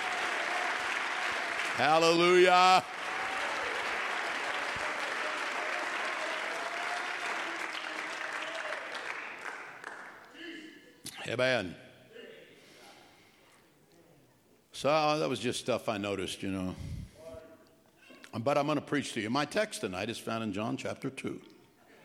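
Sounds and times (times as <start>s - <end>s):
audience clapping hands: 0.0s - 10.3s
speech: 1.8s - 3.1s, 11.3s - 11.8s, 14.8s - 17.0s, 18.3s - 21.5s.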